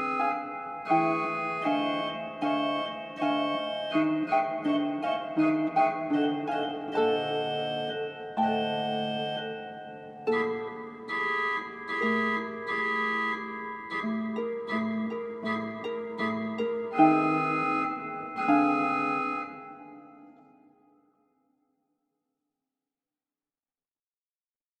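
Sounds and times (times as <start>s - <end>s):
organ: 0.0s - 19.6s
harp: 0.0s - 20.8s.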